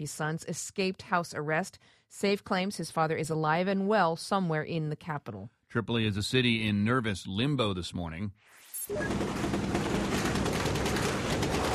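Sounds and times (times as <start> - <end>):
speech: 0.0 - 9.8
rapid automatic gunfire from gun battles in a Tripoli neighborhood: 8.9 - 11.7.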